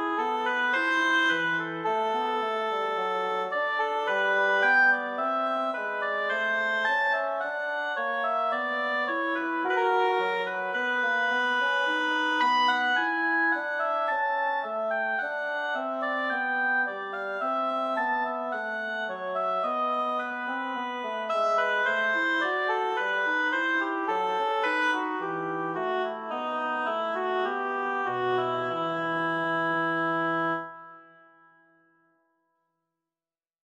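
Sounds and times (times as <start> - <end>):
bassoon playing a bourree in E minor: 0.0 - 31.5
oboe playing a bourree in E minor: 0.0 - 31.6.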